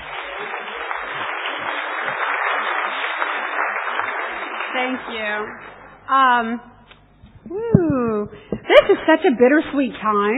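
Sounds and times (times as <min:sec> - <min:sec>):
audience applause: 0:00.0 - 0:05.9
speech: 0:04.8 - 0:06.7, 0:07.4 - 0:10.3.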